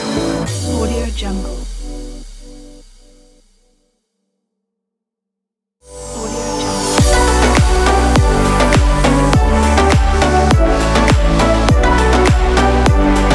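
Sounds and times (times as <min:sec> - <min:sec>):
summer pop music: 0:00.0 - 0:02.9, 0:05.9 - 0:13.3.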